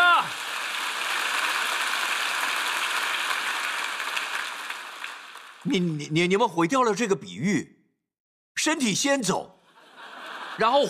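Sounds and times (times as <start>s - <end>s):
audience applause: 0.0s - 6.0s
speech: 5.6s - 7.8s, 8.6s - 9.6s, 10.6s - 10.8s
laughter: 9.7s - 10.8s.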